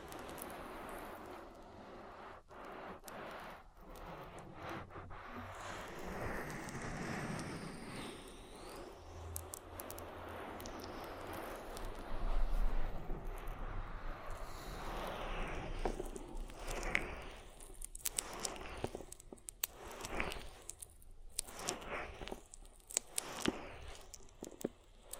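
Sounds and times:
oily hands rubbing over an ear: 0.1s - 25.1s
wet clicks and pops: 9.3s - 12.1s, 15.7s - 25.1s.

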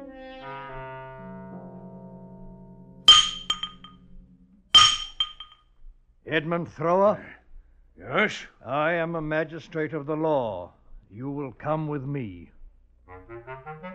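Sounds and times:
blacksmith's hammer striking metal: 3.1s - 3.9s, 4.7s - 5.5s
speech: 6.3s - 7.4s, 8.1s - 12.5s.

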